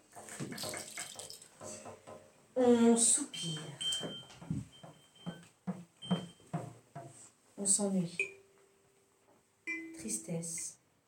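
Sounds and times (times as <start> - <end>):
rainwater trickling down window glass: 0.0 - 1.8
speech: 2.6 - 4.7, 7.6 - 8.3, 10.1 - 10.8.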